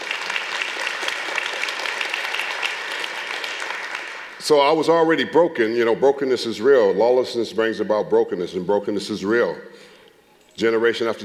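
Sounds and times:
audience applause: 0:00.0 - 0:04.4
speech: 0:04.5 - 0:09.9, 0:10.6 - 0:11.2.

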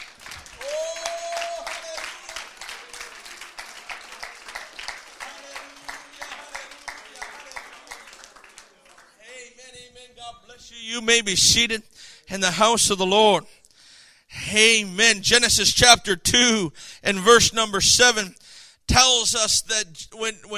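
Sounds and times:
audience hand clapping: 0:00.0 - 0:09.2
speech: 0:10.8 - 0:13.5, 0:14.5 - 0:20.5.

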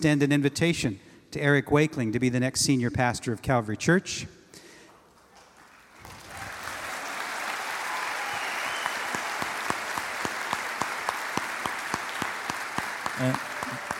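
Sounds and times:
speech: 0:00.0 - 0:04.4, 0:13.2 - 0:13.4
audience applause: 0:05.2 - 0:13.9.

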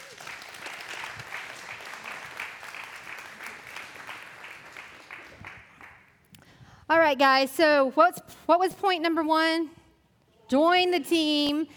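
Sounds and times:
group applauding people being introduced: 0:00.0 - 0:06.3
speech: 0:06.9 - 0:09.8, 0:10.5 - 0:11.7.

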